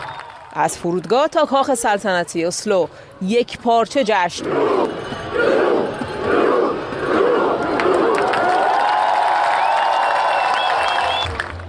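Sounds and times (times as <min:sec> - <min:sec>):
speech: 0:00.5 - 0:05.6
huge crowd cheering and shouting: 0:04.4 - 0:11.3
whistles: 0:09.6 - 0:11.4.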